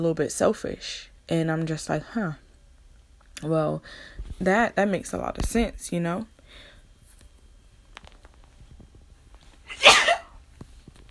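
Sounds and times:
speech: 0.0s - 2.4s, 3.4s - 6.3s
sneeze: 9.7s - 10.4s.

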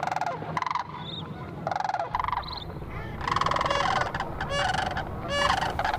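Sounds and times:
sandhill crane calls: 0.0s - 5.9s.

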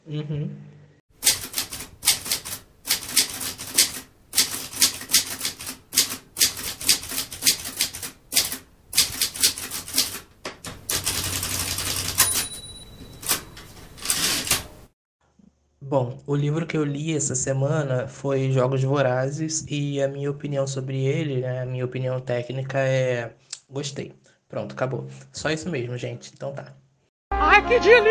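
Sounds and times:
speech: 0.1s - 0.7s, 15.9s - 26.8s, 27.5s - 28.0s
typewriter typing: 1.2s - 14.9s.

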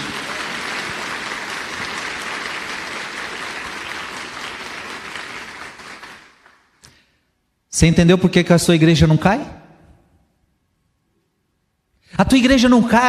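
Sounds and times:
audience applauding: 0.0s - 6.8s
speech: 7.8s - 9.6s, 12.2s - 13.0s.

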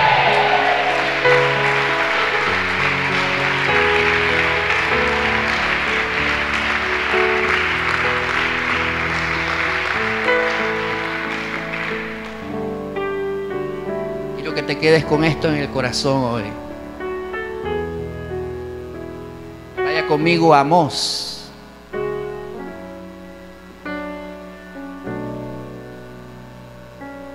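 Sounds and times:
audience applauding: 0.0s - 13.6s
sustained organ-like chords: 0.0s - 27.3s
speech: 14.8s - 16.6s, 20.1s - 21.3s.

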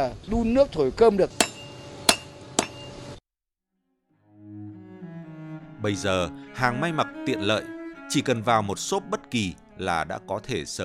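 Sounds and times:
speech: 0.0s - 1.4s, 5.8s - 10.8s
blacksmith hammering metal: 1.4s - 3.0s.

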